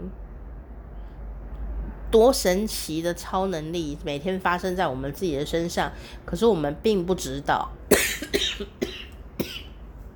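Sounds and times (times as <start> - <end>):
speech: 2.1 - 8.9
person coughing: 7.9 - 9.8.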